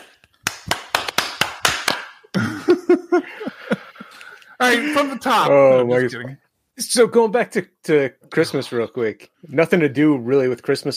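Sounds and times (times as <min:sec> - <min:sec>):
hand clap for recording sync: 0:00.0 - 0:02.4
laughter: 0:02.3 - 0:05.3
speech: 0:04.6 - 0:10.9.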